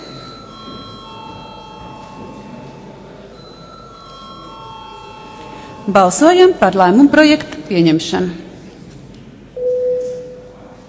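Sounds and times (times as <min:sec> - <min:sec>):
parliament voting bell: 0:00.0 - 0:07.2
speech: 0:05.8 - 0:08.4.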